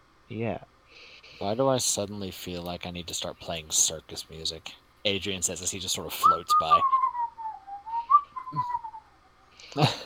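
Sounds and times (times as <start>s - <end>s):
speech: 0.3s - 6.9s, 9.8s - 10.0s
person whistling a tune: 6.2s - 9.0s.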